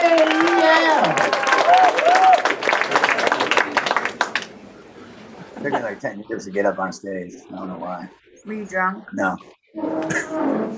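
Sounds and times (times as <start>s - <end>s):
audience applause: 0.0s - 4.6s
laughter: 5.3s - 6.8s
speech: 6.0s - 10.7s.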